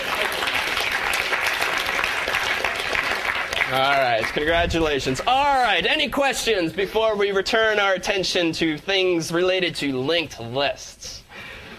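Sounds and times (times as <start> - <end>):
audience applause for a prize winner during a lecture: 0.0 - 5.0
speech: 3.7 - 11.2.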